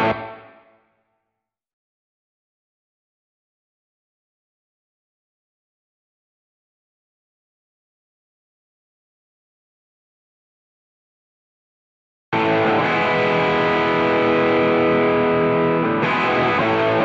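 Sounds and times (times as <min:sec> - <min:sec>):
guitar: 0:00.0 - 0:01.0, 0:12.4 - 0:17.0.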